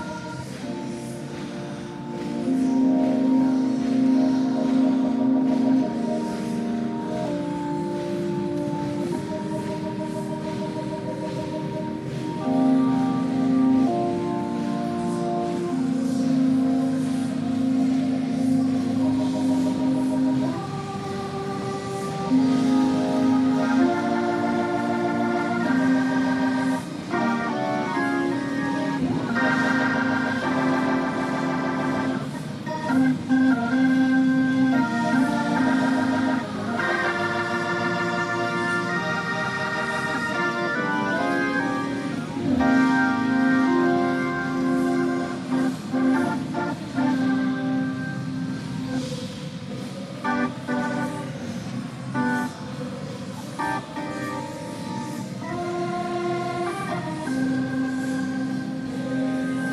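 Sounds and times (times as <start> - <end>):
organ: 0.0 - 59.7.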